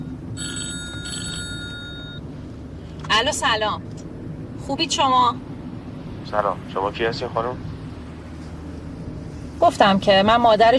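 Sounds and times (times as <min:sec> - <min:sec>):
low continuous hum: 0:00.0 - 0:10.7
telephone ringing: 0:00.4 - 0:02.2
speech: 0:03.1 - 0:04.0, 0:04.7 - 0:05.5, 0:06.3 - 0:07.7, 0:09.6 - 0:10.7.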